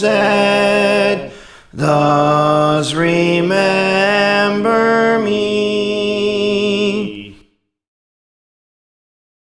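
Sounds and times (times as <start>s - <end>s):
soprano singing: 0.0s - 7.4s.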